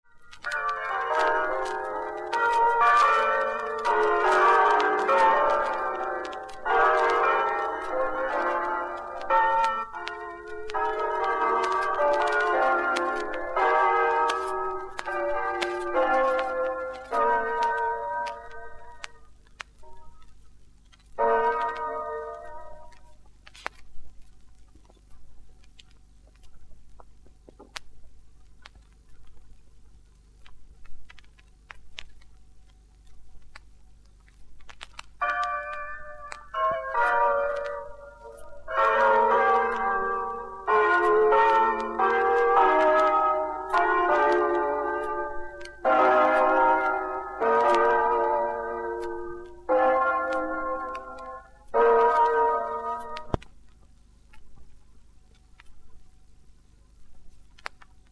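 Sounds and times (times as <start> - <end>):
bells ringing: 0.4 - 19.1, 21.2 - 22.9, 35.2 - 53.4.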